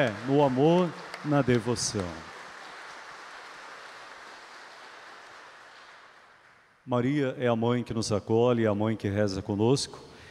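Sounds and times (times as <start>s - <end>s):
speech: 0.0s - 2.3s, 6.9s - 10.1s
crowd applauding: 0.0s - 6.8s.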